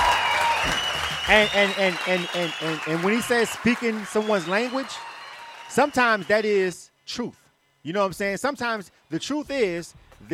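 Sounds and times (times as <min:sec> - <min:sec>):
round of applause: 0:00.0 - 0:06.7
speech: 0:00.6 - 0:05.1, 0:05.7 - 0:10.3.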